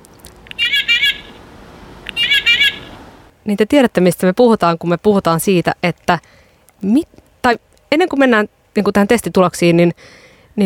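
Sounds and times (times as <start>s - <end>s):
toy horn tooting: 0.5s - 1.4s, 2.1s - 2.9s
speech: 3.4s - 10.6s.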